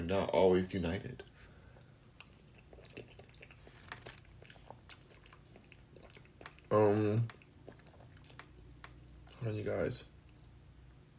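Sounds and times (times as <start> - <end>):
speech: 0.1 - 1.4, 6.7 - 7.4, 9.4 - 10.1
pet chewing papaya with seeds: 0.8 - 9.4.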